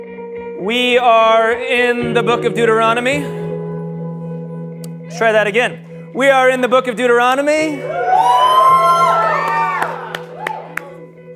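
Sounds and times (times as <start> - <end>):
speech: 0.6 - 3.5, 5.1 - 8.0
crowd cheering and whooping: 7.8 - 11.1
sharp claps or pops: 9.4 - 11.0.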